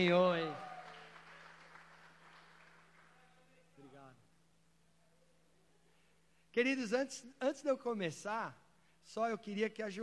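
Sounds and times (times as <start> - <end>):
speech: 0.0 - 0.7, 6.6 - 10.0
faint low hum: 0.0 - 10.0
audience applause in church: 0.4 - 3.3.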